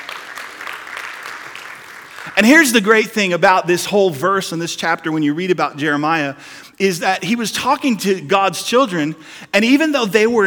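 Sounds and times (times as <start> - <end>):
audience applause: 0.0 - 2.4
speech: 2.3 - 10.4.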